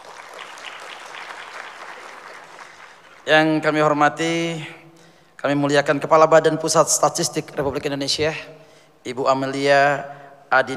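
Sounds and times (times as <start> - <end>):
audience applause: 0.0 - 3.3
speech: 3.3 - 4.8, 5.4 - 10.7.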